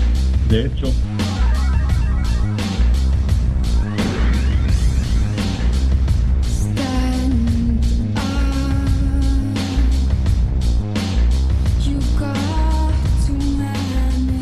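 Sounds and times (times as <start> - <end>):
loud song with heavy pounding low beat: 0.0 - 14.3
speech: 0.5 - 1.2
female voice singing long sustained notes: 6.5 - 10.1, 11.8 - 14.3.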